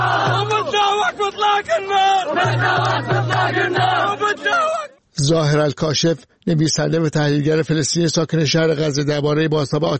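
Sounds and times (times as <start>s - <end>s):
chant-like calls: 0.0s - 5.0s
large crowd celebrating outdoors, shouting and cheering: 0.0s - 5.0s
speech: 0.4s - 9.9s.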